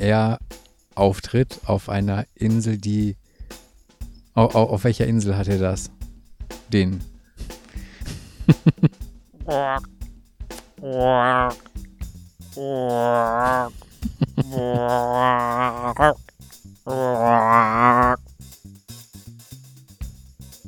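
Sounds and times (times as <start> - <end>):
speech: 0.0 - 3.2, 4.4 - 6.0, 6.7 - 7.5, 8.6 - 10.0, 10.8 - 11.7, 12.6 - 13.8, 14.5 - 18.2
audible breaths: 3.2 - 3.9, 7.2 - 8.3, 13.7 - 14.1
laughter: 8.1 - 8.9, 12.8 - 16.0
person imitating a frog croaking: 9.4 - 9.9, 10.8 - 11.6, 12.6 - 13.7, 14.3 - 16.3, 16.9 - 18.2.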